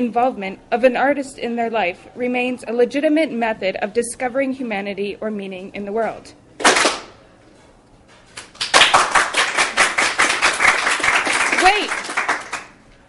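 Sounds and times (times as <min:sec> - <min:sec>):
speech: 0:00.0 - 0:06.4
audience applause: 0:08.4 - 0:12.8.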